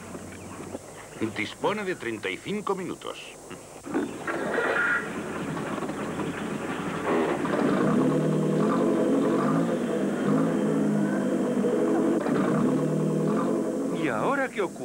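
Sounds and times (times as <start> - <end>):
speech: 1.2 - 3.4, 14.6 - 14.8
car engine revving on a jack with rear wheels spinning in the air: 4.1 - 14.8.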